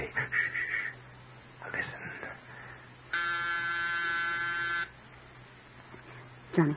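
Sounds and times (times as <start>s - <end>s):
faint low hum: 0.0s - 6.7s
doorbell buzzing: 3.1s - 4.9s
speech: 6.6s - 6.7s.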